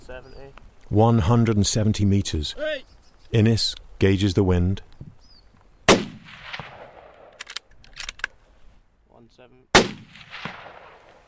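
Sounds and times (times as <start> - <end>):
speech: 0.1 - 5.0
rifle gunshot at deer: 5.9 - 7.6, 9.7 - 11.2.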